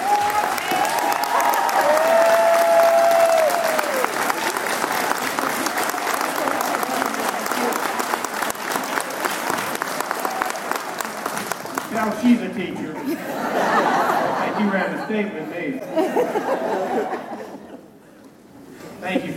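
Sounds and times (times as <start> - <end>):
audience applause welcoming North Carolina's governor at a school event: 0.0 - 12.3
laughter: 12.3 - 18.0.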